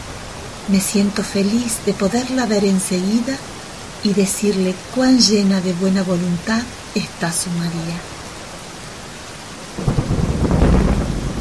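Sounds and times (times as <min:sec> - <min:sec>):
heavy rain: 0:00.0 - 0:11.4
speech: 0:00.7 - 0:08.2
thunder rumbling: 0:09.7 - 0:11.4.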